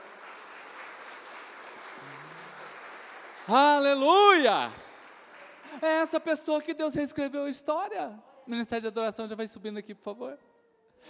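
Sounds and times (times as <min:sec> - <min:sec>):
audience applauding: 0:00.0 - 0:06.1
speech: 0:03.5 - 0:04.8, 0:05.8 - 0:11.0.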